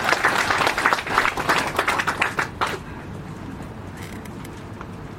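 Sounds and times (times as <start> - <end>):
audience applause: 0.0 - 3.2.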